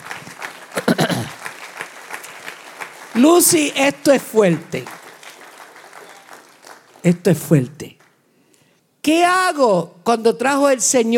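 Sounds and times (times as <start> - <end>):
audience applause: 0.0 - 7.1
speech: 3.2 - 5.0, 7.0 - 8.0, 9.0 - 11.1.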